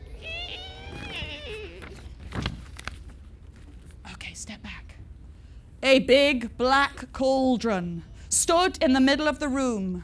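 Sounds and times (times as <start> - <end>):
voice imitating a creaking door: 0.0 - 2.2
speech: 5.9 - 10.0.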